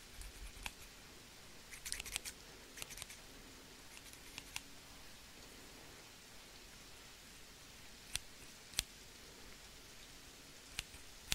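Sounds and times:
rain: 0:00.0 - 0:11.3
scissors: 0:00.1 - 0:00.8, 0:01.7 - 0:03.2, 0:03.9 - 0:04.6.

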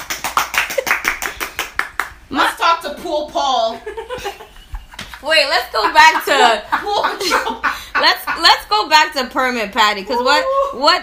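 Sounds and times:
hand clap sound effect: 0:00.0 - 0:02.2
speech: 0:02.3 - 0:04.6, 0:05.2 - 0:11.0
laughter: 0:03.8 - 0:08.8.

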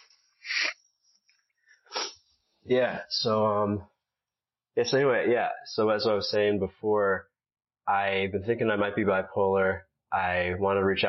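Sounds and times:
nose blowing: 0:01.9 - 0:02.2
speech: 0:02.6 - 0:03.9, 0:04.8 - 0:07.3, 0:07.9 - 0:11.0.

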